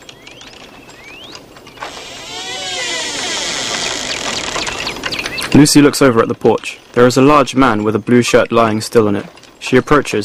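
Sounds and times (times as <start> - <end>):
shed door squeaking open: 1.8 - 5.5
speech: 5.6 - 10.2.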